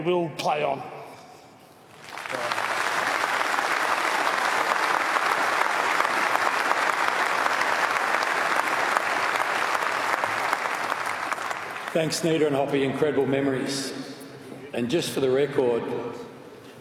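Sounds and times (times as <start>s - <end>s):
speech: 0.0s - 1.0s, 11.9s - 14.2s, 14.8s - 16.3s
audience applause: 1.9s - 12.2s.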